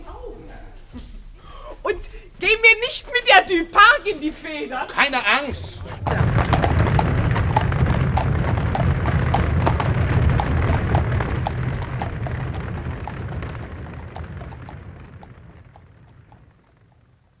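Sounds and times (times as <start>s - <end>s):
speech: 1.9s - 6.2s
carriage wheels rumbling: 5.6s - 17.3s
horse hooves clip-clopping pulling a carriage: 5.7s - 17.3s.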